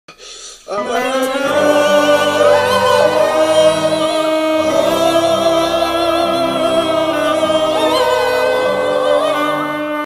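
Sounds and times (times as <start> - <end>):
epic symphonic music: 0.7 - 10.0.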